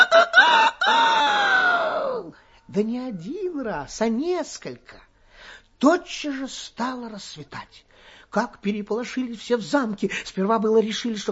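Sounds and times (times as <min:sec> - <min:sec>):
rooster crowing: 0:00.0 - 0:02.2
speech: 0:02.7 - 0:05.1, 0:05.8 - 0:11.2.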